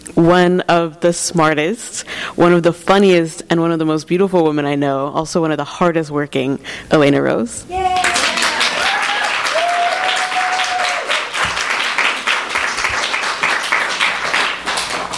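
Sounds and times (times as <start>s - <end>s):
speech: 0.2s - 8.1s
audience clapping: 7.8s - 15.1s.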